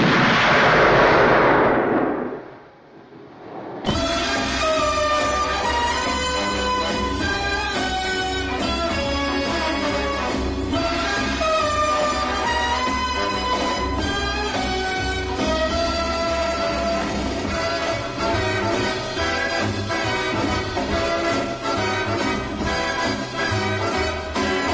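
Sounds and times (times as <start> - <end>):
gunshot from the James Bond gun-barrel opening: 0.0 - 4.4
music: 3.9 - 24.7.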